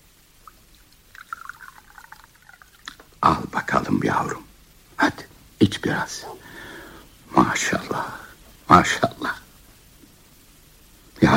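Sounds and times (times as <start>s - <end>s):
Zamzam water being poured for a baby: 0.4s - 3.2s
speech: 3.2s - 6.5s, 7.3s - 9.3s.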